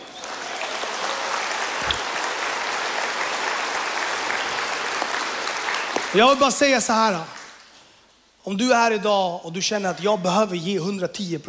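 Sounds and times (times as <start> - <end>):
applause: 0.0 - 7.9
speech: 6.1 - 7.4, 8.4 - 11.4.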